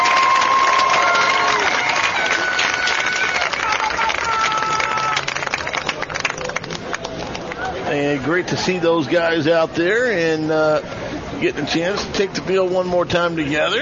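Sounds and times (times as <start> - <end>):
crowd applauding: 0.0 - 7.8
speech: 8.2 - 13.7.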